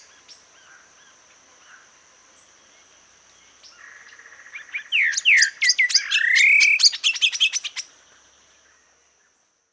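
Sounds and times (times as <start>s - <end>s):
bird whistles: 4.8s - 7.8s.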